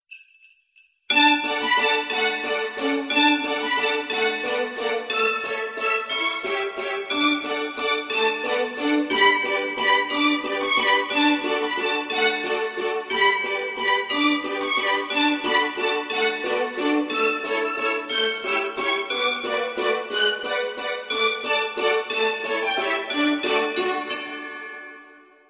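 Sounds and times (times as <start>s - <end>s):
Christmas carol ringtone: 0.1s - 25.4s.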